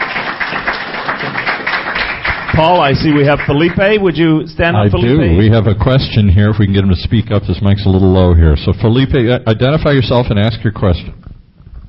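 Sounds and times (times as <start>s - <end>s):
audience applause: 0.0s - 4.1s
speech: 2.6s - 11.2s.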